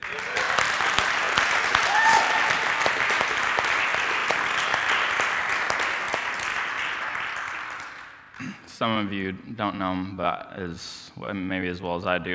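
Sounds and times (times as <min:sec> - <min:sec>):
audience applause: 0:00.0 - 0:08.6
speech: 0:08.8 - 0:12.3.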